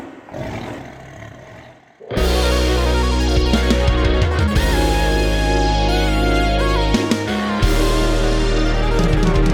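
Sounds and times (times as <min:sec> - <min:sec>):
big cat walk on theme music: 0:02.1 - 0:09.5.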